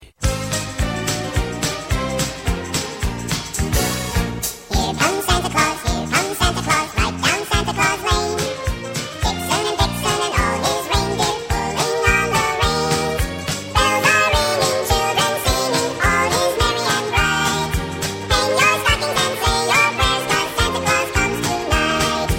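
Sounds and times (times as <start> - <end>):
Vietnamese Christmas music: 0.0 - 22.3.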